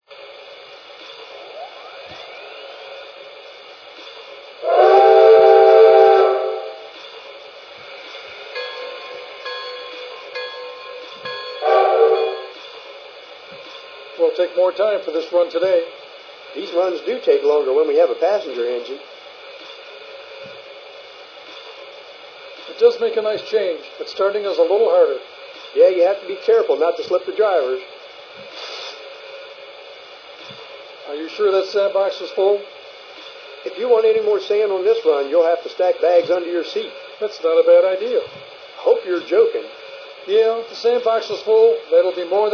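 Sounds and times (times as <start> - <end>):
trains: 0.0 - 42.5.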